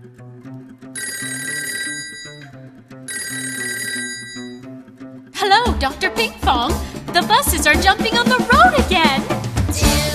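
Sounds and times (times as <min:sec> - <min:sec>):
telephone ringing: 0:01.0 - 0:04.7
bouncy tune: 0:01.0 - 0:10.1
speech: 0:05.8 - 0:09.3.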